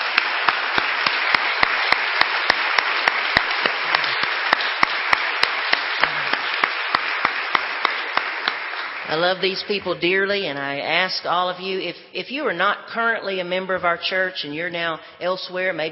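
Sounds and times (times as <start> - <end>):
audience applause: 0.0 - 9.2
speech: 9.1 - 15.9.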